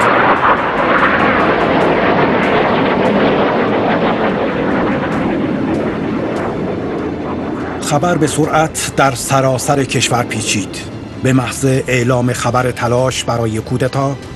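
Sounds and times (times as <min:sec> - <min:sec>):
F-16 fighter jets flying low over Ankara: 0:00.0 - 0:14.3
speech: 0:07.9 - 0:14.3.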